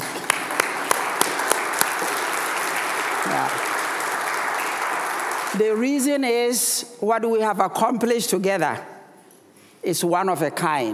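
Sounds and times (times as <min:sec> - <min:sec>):
audience applause: 0:00.0 - 0:05.8
speech: 0:05.6 - 0:08.9, 0:09.8 - 0:10.9.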